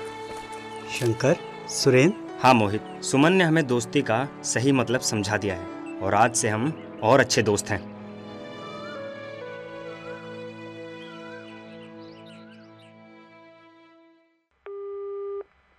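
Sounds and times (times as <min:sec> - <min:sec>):
speech: 0:00.9 - 0:07.9
telephone busy signal: 0:14.7 - 0:15.5.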